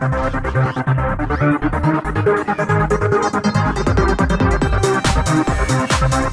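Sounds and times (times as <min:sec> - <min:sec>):
phone alarm with cheap trance tune: 0:00.1 - 0:06.3.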